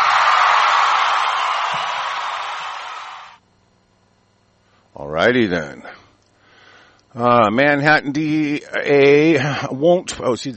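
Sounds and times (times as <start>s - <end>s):
audience applause: 0.0s - 3.4s
speech: 5.2s - 5.9s, 7.1s - 10.5s.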